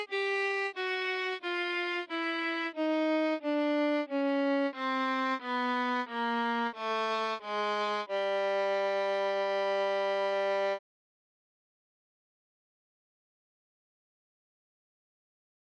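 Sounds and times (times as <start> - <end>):
violin notes: 0.0 - 10.8.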